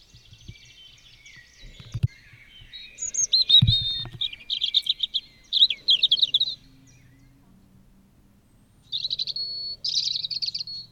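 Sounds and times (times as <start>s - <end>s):
European robin singing in a neighbourhood: 0.0s - 10.9s.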